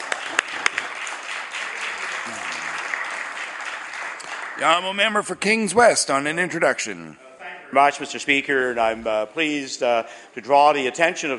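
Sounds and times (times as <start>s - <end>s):
applause in the legislative chamber: 0.0s - 5.2s
speech: 4.6s - 11.3s.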